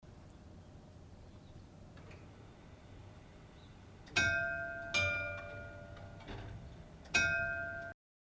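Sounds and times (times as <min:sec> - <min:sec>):
bell ringing: 0:04.1 - 0:06.4, 0:07.1 - 0:08.0.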